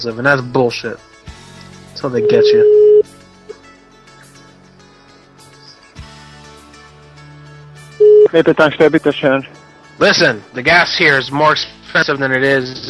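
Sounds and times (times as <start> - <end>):
speech: 0.0 - 1.1, 2.0 - 2.7, 8.4 - 12.8
telephone dialing beeps as a number is keyed in: 2.2 - 3.0, 8.0 - 8.3.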